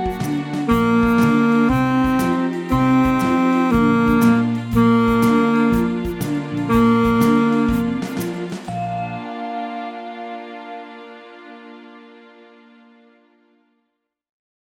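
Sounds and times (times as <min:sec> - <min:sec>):
saxophone: 0:00.0 - 0:08.8.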